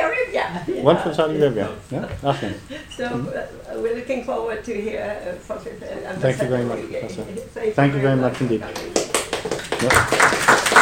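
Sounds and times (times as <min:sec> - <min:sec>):
speech: 0:00.5 - 0:09.0, 0:09.8 - 0:10.3
audience applause: 0:08.8 - 0:10.8.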